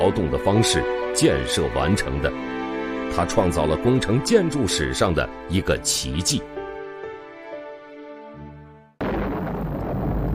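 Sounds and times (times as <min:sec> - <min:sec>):
speech: 0:00.0 - 0:06.5
sustained tonal music: 0:00.0 - 0:08.9
rumbling explosive blast from mountain-quarrying charges at Ming Tombs Reservoir groundbreaking: 0:09.0 - 0:10.3.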